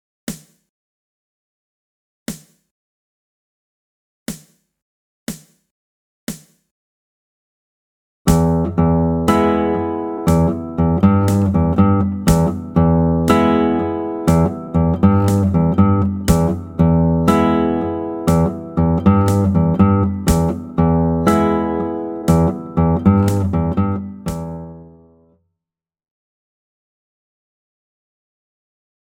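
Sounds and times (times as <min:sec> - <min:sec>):
slow riff in E major: 0:08.3 - 0:25.2.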